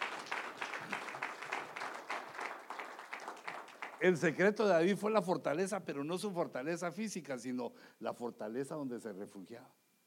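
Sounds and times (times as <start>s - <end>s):
audience applause: 0.0s - 4.2s
speech: 4.0s - 9.8s.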